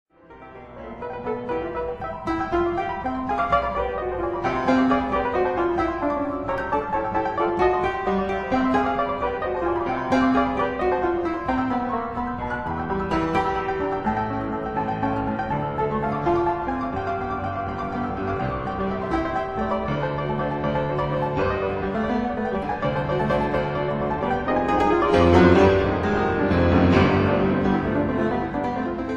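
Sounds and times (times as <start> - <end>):
piano etude in C major: 0.1 - 29.1.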